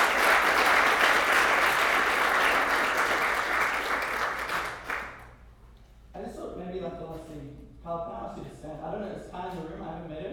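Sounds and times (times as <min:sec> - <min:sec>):
crowd applause: 0:00.0 - 0:05.3.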